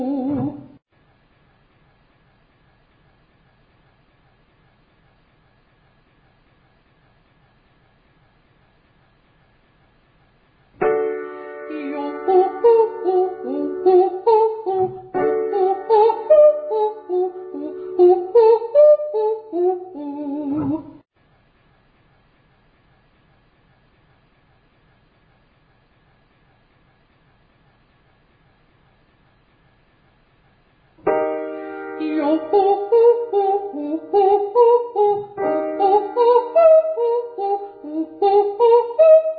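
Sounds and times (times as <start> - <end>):
descending vocal triads: 0.0 - 0.8, 11.6 - 21.0, 31.9 - 39.3.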